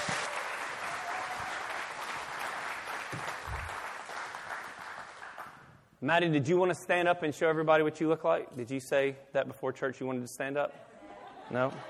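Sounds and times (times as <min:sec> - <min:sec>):
crowd applause: 0:00.0 - 0:05.6
speech: 0:06.0 - 0:10.9, 0:11.5 - 0:11.8
laughter: 0:10.7 - 0:11.8.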